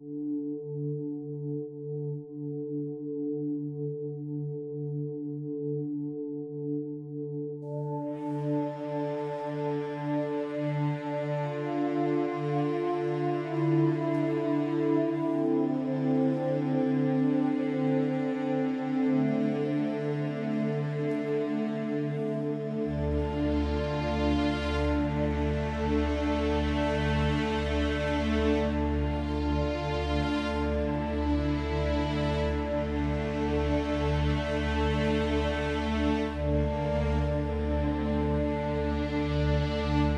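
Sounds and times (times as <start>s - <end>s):
music: 0.0s - 40.1s.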